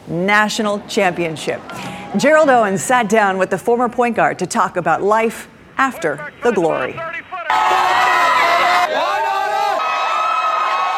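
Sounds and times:
speech: 0:00.1 - 0:07.8
crowd cheering welcoming the NC State team home: 0:01.7 - 0:03.2, 0:06.0 - 0:10.9
whoops and shouts: 0:07.5 - 0:10.9.

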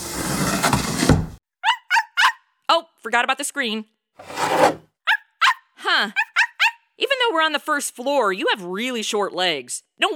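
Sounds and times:
storm window sliding open: 0:00.0 - 0:01.4, 0:04.2 - 0:04.8
animal whining: 0:01.6 - 0:02.4
speech: 0:02.8 - 0:04.9, 0:05.8 - 0:06.2, 0:07.0 - 0:10.1.

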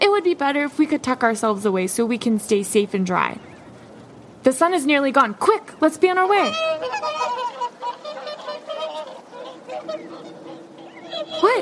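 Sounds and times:
speech: 0:00.0 - 0:03.5, 0:04.4 - 0:07.2, 0:11.4 - 0:11.5
swans honking: 0:03.2 - 0:11.5.

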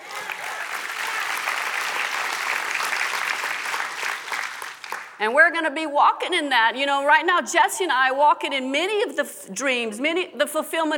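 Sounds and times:
audience hand clapping: 0:00.0 - 0:05.2
speech: 0:05.2 - 0:10.9.

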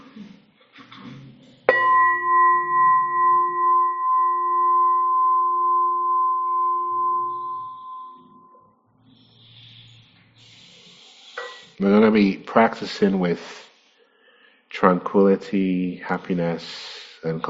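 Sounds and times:
meditation bell rung: 0:01.7 - 0:08.7
speech: 0:11.8 - 0:13.6, 0:14.8 - 0:17.4.

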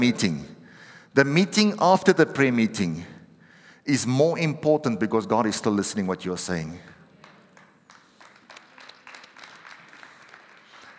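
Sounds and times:
speech: 0:00.0 - 0:00.5, 0:01.2 - 0:03.1, 0:03.8 - 0:07.0
scattered, uneven applause from a crowd: 0:07.2 - 0:10.9.

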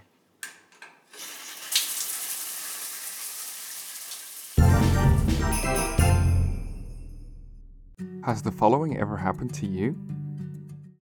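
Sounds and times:
shower running water: 0:01.1 - 0:06.3
speech: 0:08.2 - 0:10.2.

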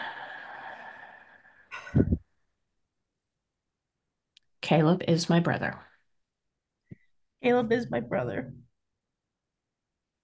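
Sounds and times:
deep breath: 0:00.0 - 0:02.4
speech: 0:04.7 - 0:05.9, 0:07.4 - 0:08.6.

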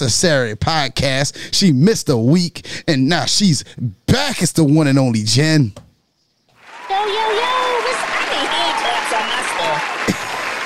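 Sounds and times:
speech: 0:00.0 - 0:05.8
hands clapping: 0:06.5 - 0:10.6.

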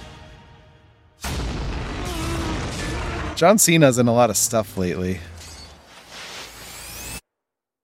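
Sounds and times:
grenade explosion in a movie trailer: 0:01.2 - 0:03.4
speech: 0:03.4 - 0:05.3.

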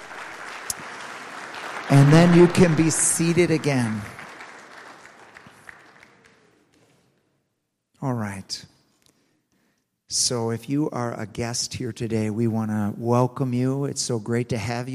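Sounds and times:
audience applause: 0:00.0 - 0:06.7
speech: 0:01.9 - 0:04.2, 0:08.0 - 0:08.8, 0:10.1 - 0:14.9.

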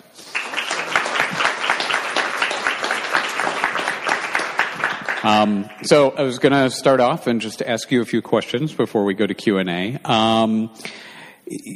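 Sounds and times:
audience applause welcoming a guest: 0:00.0 - 0:05.8
speech: 0:05.2 - 0:11.7.

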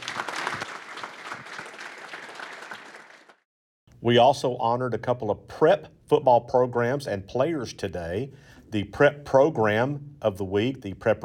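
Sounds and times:
round of applause: 0:00.0 - 0:03.5
speech: 0:04.0 - 0:11.2.

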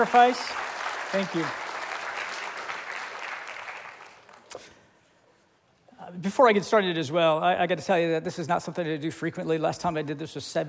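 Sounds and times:
speech: 0:00.0 - 0:01.6, 0:06.1 - 0:10.6
crowd applauding: 0:00.0 - 0:04.5.

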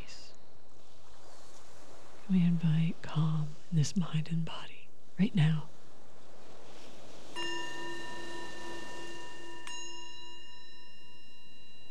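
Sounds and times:
speech: 0:02.3 - 0:05.7
mindfulness bell: 0:06.8 - 0:11.8.

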